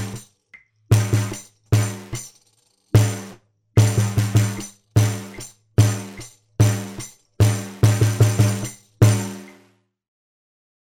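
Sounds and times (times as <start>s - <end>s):
bass: 0.0s - 0.2s, 0.9s - 2.2s, 3.0s - 9.6s.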